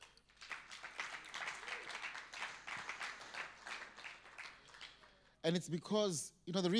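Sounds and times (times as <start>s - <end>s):
audience applause: 0.0s - 5.1s
speech: 5.4s - 6.7s.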